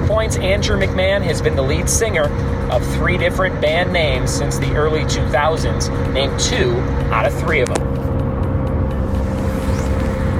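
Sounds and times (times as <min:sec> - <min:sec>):
car engine droning: 0:00.0 - 0:10.3
road noise: 0:00.0 - 0:10.3
speech: 0:00.2 - 0:08.1.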